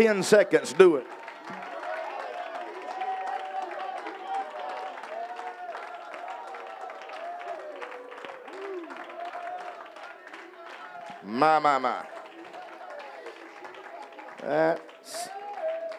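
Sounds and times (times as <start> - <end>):
speech: 0.0 - 1.6, 11.4 - 12.2, 14.4 - 15.4
audience hand clapping: 0.0 - 15.9
audience voices raised in cries of praise: 0.0 - 15.9.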